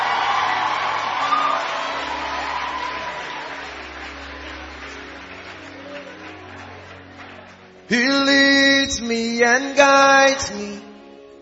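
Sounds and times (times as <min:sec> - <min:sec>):
audience applause during a church sermon: 0:00.0 - 0:08.3
speech: 0:07.9 - 0:10.9.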